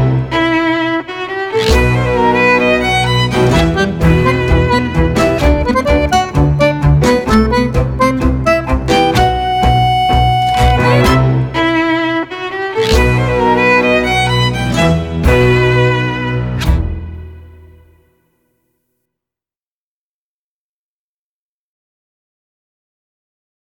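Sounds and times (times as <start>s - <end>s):
tango ensemble playing: 0.0s - 17.8s.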